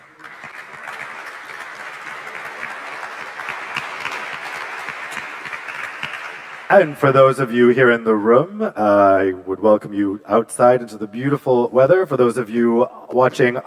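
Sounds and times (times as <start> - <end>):
audience applause: 0.0 - 7.2
speech: 6.7 - 13.6.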